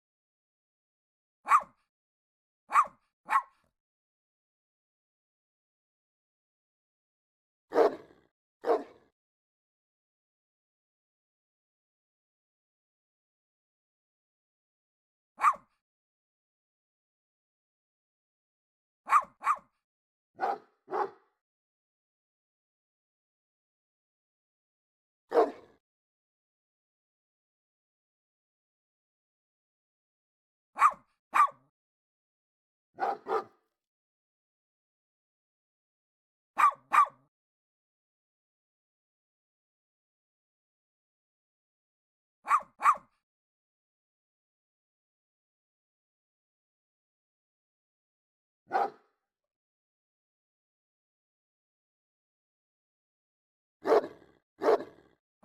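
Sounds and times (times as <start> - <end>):
dog barking: 1.5 - 1.8, 2.7 - 3.7, 7.7 - 9.1, 15.4 - 15.8, 19.1 - 19.7, 20.4 - 21.3, 25.3 - 25.8, 30.8 - 31.6, 33.0 - 33.6, 36.6 - 37.3, 42.5 - 43.2, 48.7 - 49.1, 53.8 - 55.4.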